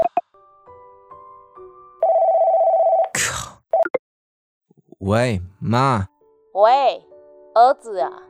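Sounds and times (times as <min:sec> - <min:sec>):
telephone ringing: 0:02.0 - 0:03.1
speech: 0:05.0 - 0:08.2.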